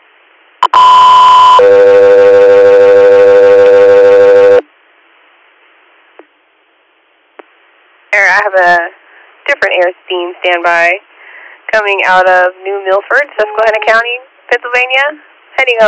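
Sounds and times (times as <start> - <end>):
faint radio static: 0.0 - 15.8
higher-pitched radio alert tone: 0.6 - 4.6
speech: 8.4 - 11.1, 11.7 - 15.8.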